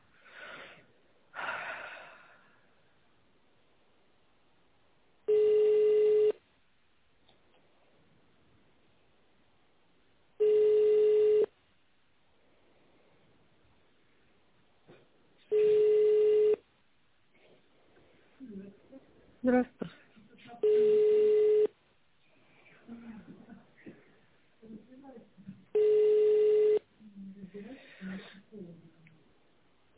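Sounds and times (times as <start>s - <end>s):
telephone ringback tone while on hold: 5.3s - 6.4s, 10.4s - 11.5s, 15.5s - 16.6s, 20.6s - 21.7s, 25.8s - 26.8s
speech: 19.4s - 20.0s.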